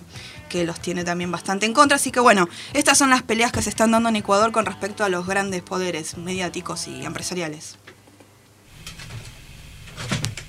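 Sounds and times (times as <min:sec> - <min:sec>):
speech: 0:00.5 - 0:08.0
door sliding: 0:08.7 - 0:10.4.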